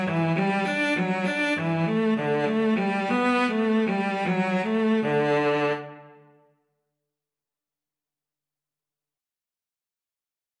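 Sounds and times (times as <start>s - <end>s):
viola and cello duet melody: 0.0s - 6.2s.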